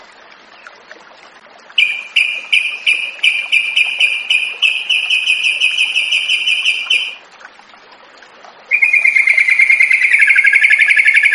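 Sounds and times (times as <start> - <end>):
yellow-vented bulbul song of short sharp chirps: 1.8 - 7.2, 8.7 - 11.3.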